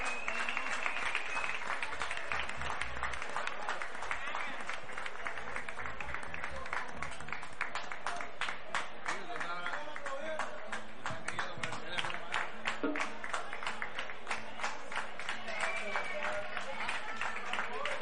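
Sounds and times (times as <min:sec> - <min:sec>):
crowd applause: 0:00.0 - 0:18.0.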